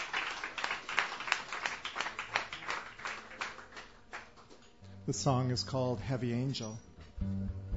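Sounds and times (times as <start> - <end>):
audience applause at a Sunday night open mic: 0.0 - 4.5
speech: 5.1 - 7.6.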